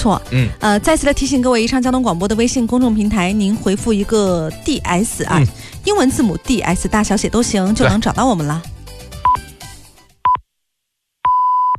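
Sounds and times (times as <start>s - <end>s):
speech: 0.0s - 8.7s
hourly radio time signal beeps: 11.3s - 11.7s.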